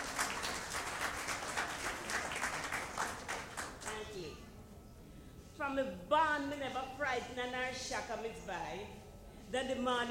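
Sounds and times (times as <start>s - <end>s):
audience applause: 0.0s - 3.9s
speech: 5.6s - 10.1s.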